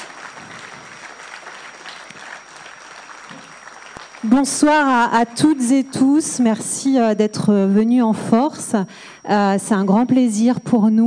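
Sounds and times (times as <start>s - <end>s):
audience applauding at an evening event at the Tjibaou cultural centre: 0.0s - 6.0s
speech: 4.2s - 11.0s.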